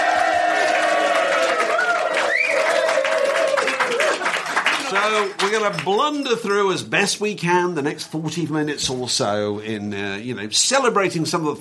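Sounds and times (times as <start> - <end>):
audience applauding: 0.0 - 6.0
speech: 5.0 - 11.6.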